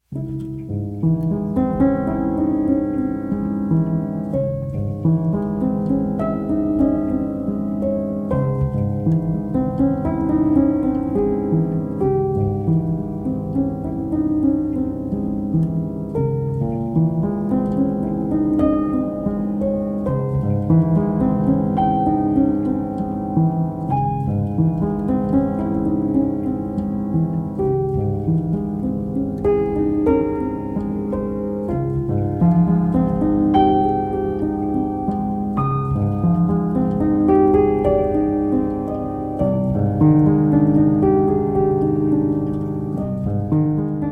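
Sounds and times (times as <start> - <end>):
piano music: 0.0 - 44.1.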